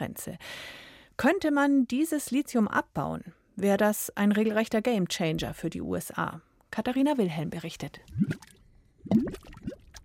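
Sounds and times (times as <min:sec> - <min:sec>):
speech: 0:00.1 - 0:08.5
mud volcanoes bubbling: 0:08.0 - 0:10.0.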